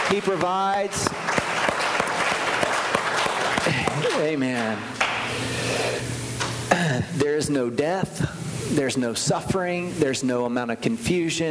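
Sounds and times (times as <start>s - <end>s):
applause, hand clapping: 0.0s - 5.3s
speech: 0.1s - 1.9s, 3.6s - 11.4s
laughter: 3.4s - 4.7s.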